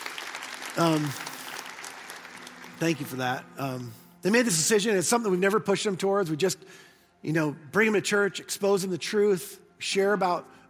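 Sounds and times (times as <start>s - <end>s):
audience clapping: 0.0s - 3.4s
speech: 0.7s - 1.3s, 2.8s - 10.6s.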